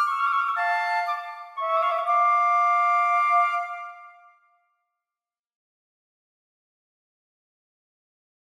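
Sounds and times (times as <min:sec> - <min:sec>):
minuet for flute duet: 0:00.0 - 0:04.5.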